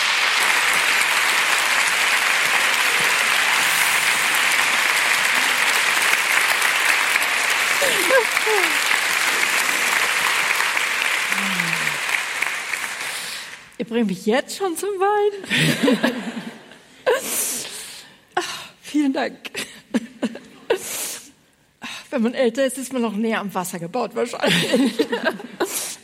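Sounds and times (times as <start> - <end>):
large audience applause welcoming guests on stage: 0.0 - 13.8
laughter: 2.3 - 10.4, 11.3 - 12.0, 15.5 - 16.8, 24.4 - 25.7
speech: 13.8 - 16.4, 19.0 - 19.6, 22.2 - 25.6.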